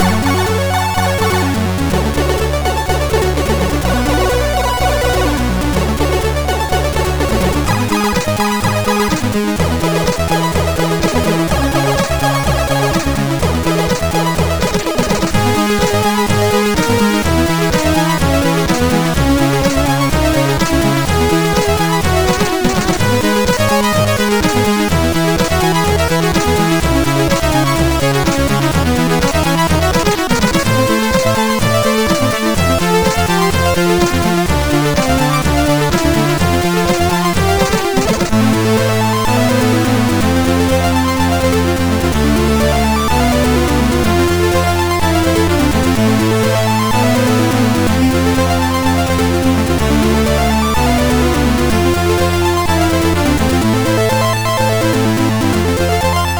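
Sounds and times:
SID chip MOS6581R4 music: 0.0 - 56.3.

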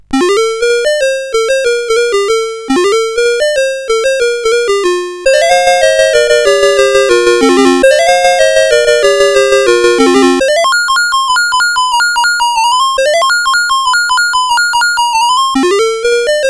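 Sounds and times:
CSG8580R5 chiptune synth: 0.0 - 16.4.

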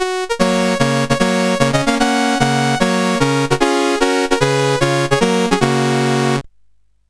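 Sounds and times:
SID CSG8580R5 chiptune menu music: 0.0 - 6.4.

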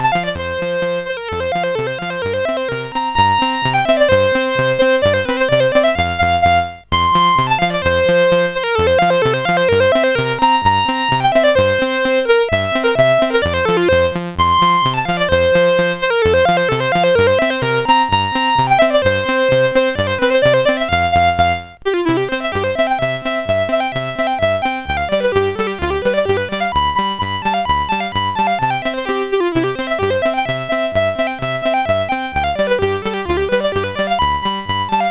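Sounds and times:
clarinet polka: 0.0 - 35.0.

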